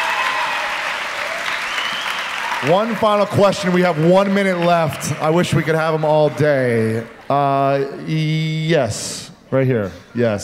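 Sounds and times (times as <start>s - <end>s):
crowd applauding: 0.0s - 7.9s
speech: 2.6s - 10.4s.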